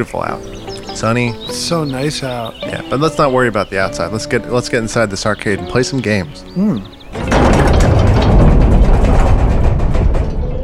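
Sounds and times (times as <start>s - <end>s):
speech: 0.0s - 7.6s
heavy arcade door opening: 6.8s - 10.6s.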